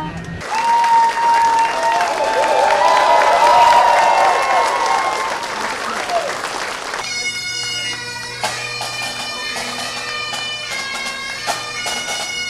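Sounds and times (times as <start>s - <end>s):
crowd of family and friends cheering and applauding at Chicago's Midway airport: 0.4s - 7.3s.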